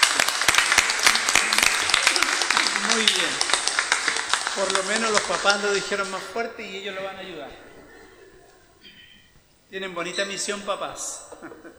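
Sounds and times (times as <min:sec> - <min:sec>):
applause: 0:00.0 - 0:06.4
laughter: 0:00.0 - 0:11.7
speech: 0:03.0 - 0:03.5, 0:04.6 - 0:07.7, 0:09.7 - 0:11.7.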